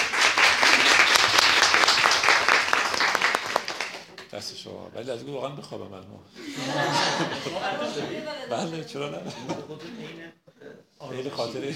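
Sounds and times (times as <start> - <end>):
audience clapping in someone's honour: 0.0 - 4.3
speech: 4.4 - 10.4, 11.0 - 11.7
laughter: 6.4 - 8.5, 9.1 - 10.2.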